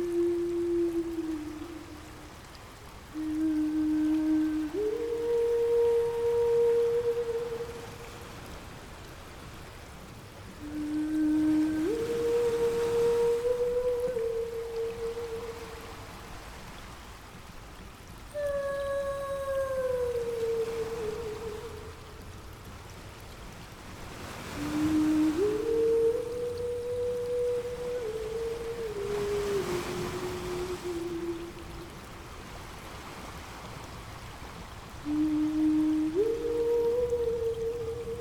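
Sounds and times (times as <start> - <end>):
mermaid singing wordless phrases of long held notes: 0.0 - 8.3, 10.5 - 16.3, 18.3 - 22.4, 24.4 - 32.3, 35.0 - 38.1
steady ocean wash of crashing waves: 0.0 - 38.1.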